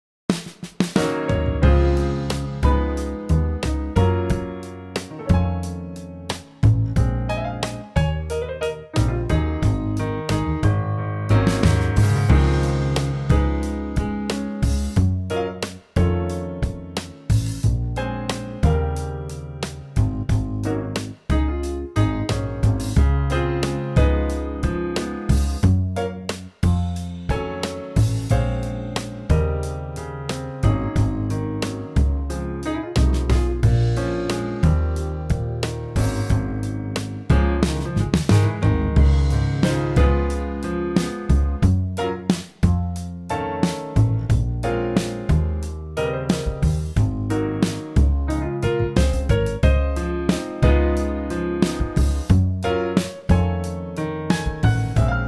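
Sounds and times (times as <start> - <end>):
trio music: 0.8 - 55.2.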